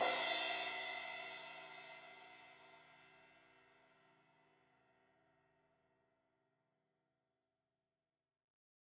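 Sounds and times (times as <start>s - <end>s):
16-inch crash cymbal hit on the edge: 0.0s - 1.7s.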